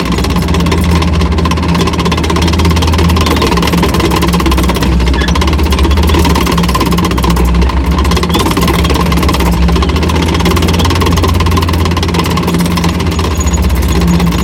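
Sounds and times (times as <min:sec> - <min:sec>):
tank tracks moving at light speed: 0:00.0 - 0:14.4.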